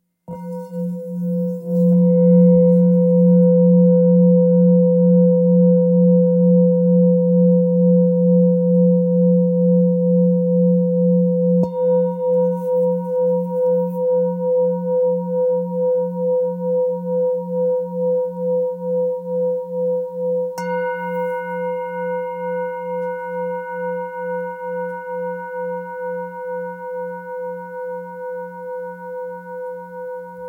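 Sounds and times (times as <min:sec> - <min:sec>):
Tibetan singing bowls in F: 0:00.3 - 0:30.4.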